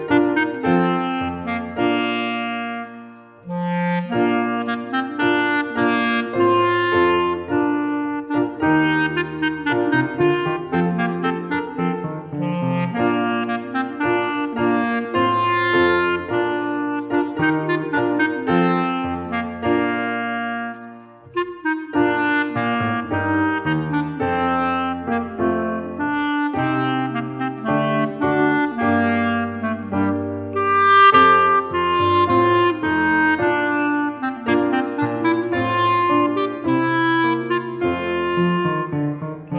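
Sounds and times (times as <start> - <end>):
clarinet: 0.0 - 39.5
piano: 0.0 - 39.5.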